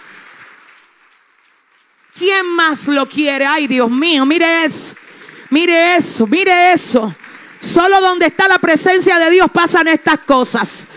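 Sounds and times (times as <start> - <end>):
applause: 0.0 - 10.9
speech: 2.2 - 10.9.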